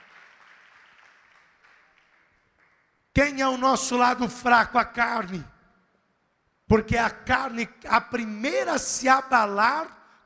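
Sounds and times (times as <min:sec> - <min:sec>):
audience applauding: 0:00.0 - 0:03.0
speech: 0:03.2 - 0:05.5, 0:06.7 - 0:10.0.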